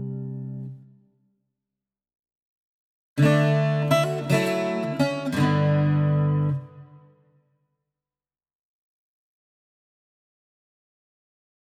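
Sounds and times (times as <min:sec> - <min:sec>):
bouzouki version of Christmas song: 0:03.2 - 0:07.0.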